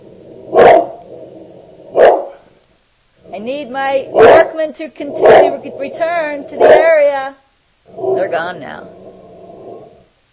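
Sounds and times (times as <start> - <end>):
low steady hum: 0.0 - 10.3
dog barking at smoke alarm chirps: 0.5 - 1.0, 2.0 - 2.4, 4.1 - 4.6, 5.2 - 5.6, 6.6 - 7.0
speech: 3.4 - 9.0.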